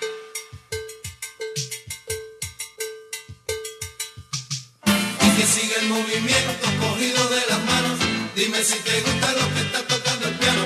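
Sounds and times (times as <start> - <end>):
cowbell being struck: 0.0 - 5.2
speech: 5.4 - 10.6.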